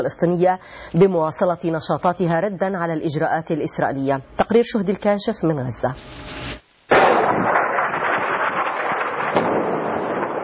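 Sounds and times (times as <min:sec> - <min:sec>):
speech: 0:00.0 - 0:06.6
crackling rumble: 0:06.0 - 0:10.4
explosions from airstrike bombardment: 0:06.9 - 0:10.4.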